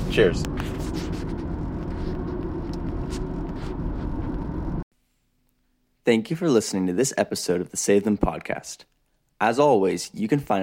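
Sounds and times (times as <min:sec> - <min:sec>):
car driving on a road: 0:00.0 - 0:04.8
speech: 0:00.2 - 0:00.8, 0:06.1 - 0:10.6.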